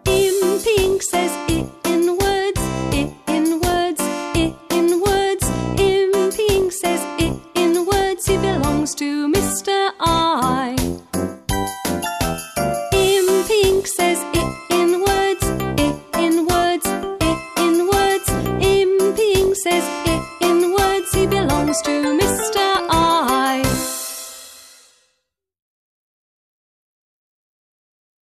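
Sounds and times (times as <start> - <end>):
children's song: 0.1 - 11.1, 12.9 - 24.3.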